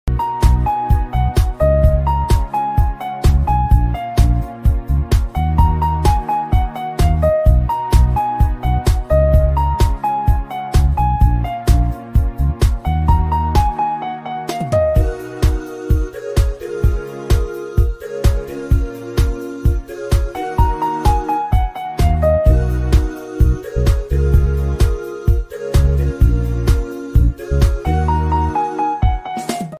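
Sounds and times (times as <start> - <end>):
piano: 0.1 - 29.7.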